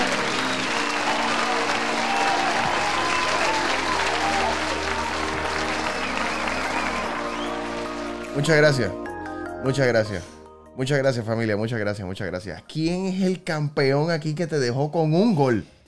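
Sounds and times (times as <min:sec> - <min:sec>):
audience applause: 0:00.0 - 0:08.8
speech: 0:08.4 - 0:09.0, 0:09.6 - 0:15.8.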